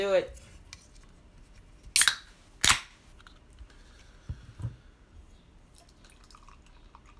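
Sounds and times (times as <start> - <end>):
speech: 0.0 - 0.4
beer bottle cap pried open: 2.0 - 2.9.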